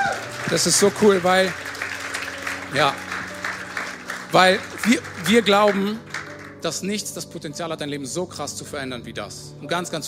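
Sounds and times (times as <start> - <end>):
audience applause at a worship gathering: 0.0 - 6.9
speech: 0.5 - 1.7, 2.7 - 3.1, 4.3 - 10.0.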